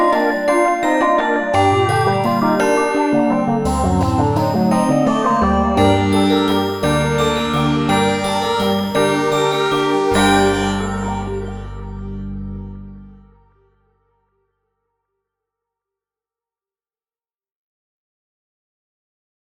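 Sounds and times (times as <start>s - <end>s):
Christmas carol: 0.0s - 13.4s.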